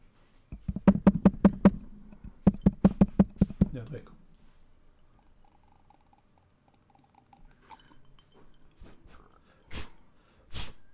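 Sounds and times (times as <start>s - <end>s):
tapping on a microphone: 0.5s - 4.0s.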